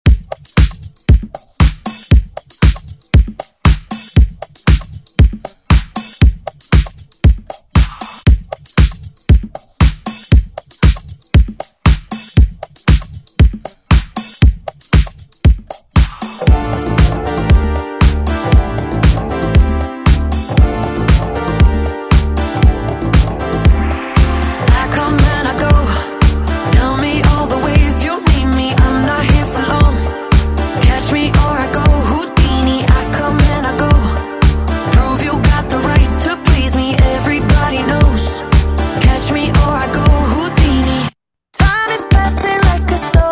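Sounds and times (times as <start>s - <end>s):
pop drum loop: 0.0s - 43.2s.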